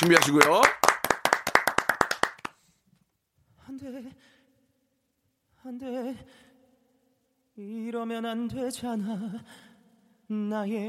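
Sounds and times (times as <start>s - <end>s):
speech: 0.0s - 0.8s, 3.8s - 4.4s, 5.6s - 6.5s, 7.6s - 9.7s, 10.3s - 10.8s
brisk evenly timed clapping: 0.0s - 2.5s.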